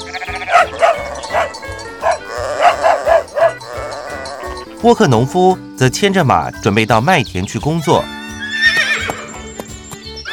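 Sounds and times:
sheepdog barking: 0.5s - 3.7s
speech: 4.8s - 8.2s.

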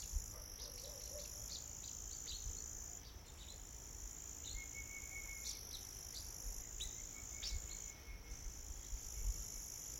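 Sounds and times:
crickets and insects droning in a mountain forest: 0.0s - 9.9s
thin whistle-like tone: 4.5s - 5.6s, 6.9s - 8.5s.

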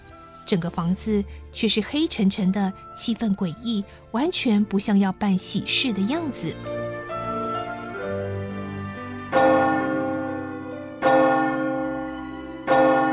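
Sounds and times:
speech: 0.5s - 6.8s
church bell striking the hour: 9.3s - 13.1s.

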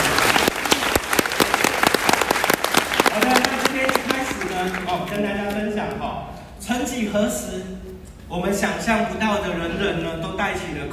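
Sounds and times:
audience applause: 0.0s - 5.2s
speech: 4.6s - 10.9s.

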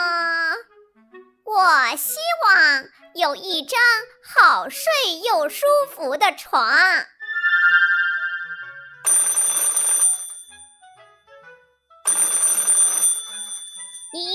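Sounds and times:
speech: 1.6s - 7.1s
telephone ringing: 7.2s - 10.7s, 12.1s - 14.1s.

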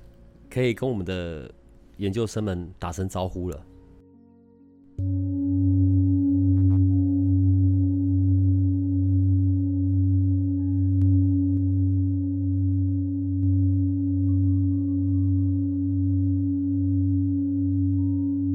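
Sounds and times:
speech: 0.5s - 3.7s
singing bowl ringing: 5.0s - 18.5s.

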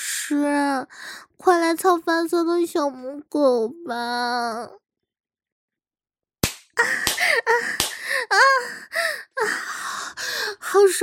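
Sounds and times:
speech: 0.3s - 4.8s, 6.8s - 11.0s
hand spanking buttocks: 6.4s - 8.0s.

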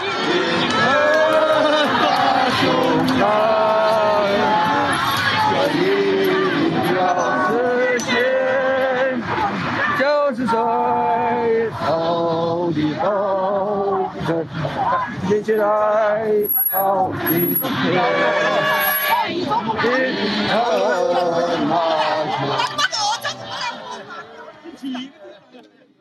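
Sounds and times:
chatter and murmuring: 0.0s - 25.9s
protest crowd singing at street rally: 0.0s - 25.9s
laughter: 19.4s - 25.9s.

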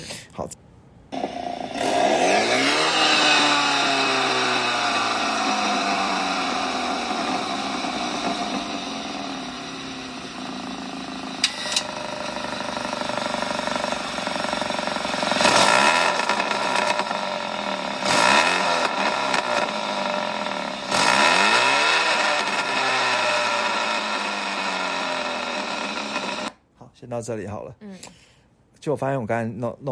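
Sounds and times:
engine revving through aftermarket exhaust: 1.1s - 26.6s
speech: 27.2s - 28.2s, 28.8s - 29.9s.

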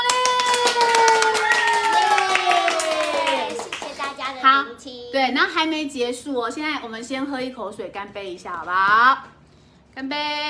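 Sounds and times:
small group applauding: 0.0s - 4.4s
speech: 4.8s - 9.4s, 10.0s - 10.4s.

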